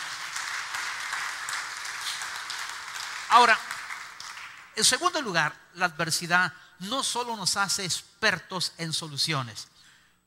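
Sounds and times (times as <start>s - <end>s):
audience applause: 0.0s - 4.8s
speech: 3.3s - 3.7s, 4.8s - 9.7s.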